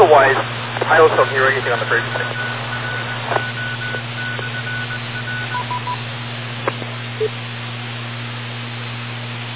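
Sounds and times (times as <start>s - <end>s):
radio selective calling tones opening squelch: 0.0s - 6.0s
low electrical hum: 0.0s - 9.5s
speech: 0.1s - 2.6s, 3.3s - 3.6s, 7.2s - 7.4s
radio clicks: 0.3s - 5.3s, 6.6s - 6.9s.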